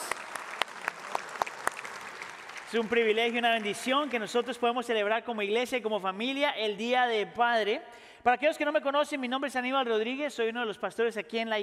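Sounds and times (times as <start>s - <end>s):
audience applause: 0.0s - 4.6s
speech: 2.7s - 11.6s.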